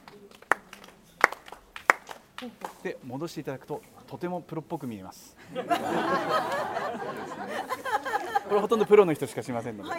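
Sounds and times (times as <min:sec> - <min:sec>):
ritual hand claps at a shrine: 0:00.0 - 0:02.9, 0:06.4 - 0:07.4
faint murmur of noise: 0:00.0 - 0:09.9
speech: 0:02.4 - 0:09.9
laughter: 0:05.4 - 0:09.4.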